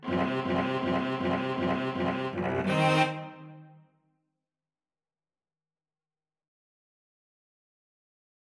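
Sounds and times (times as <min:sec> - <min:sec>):
string trio playing: 0:00.0 - 0:03.6.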